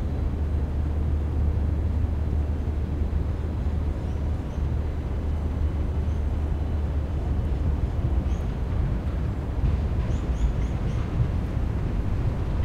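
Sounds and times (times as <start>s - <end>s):
city noise: 0.0s - 12.6s.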